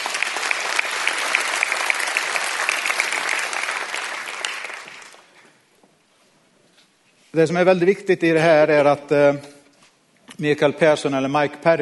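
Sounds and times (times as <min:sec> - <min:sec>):
audience applause: 0:00.0 - 0:05.3
speech: 0:07.4 - 0:09.5, 0:10.4 - 0:11.8.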